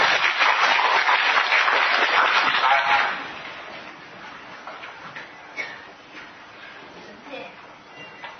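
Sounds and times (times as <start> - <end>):
audience applause: 0.0 - 3.6.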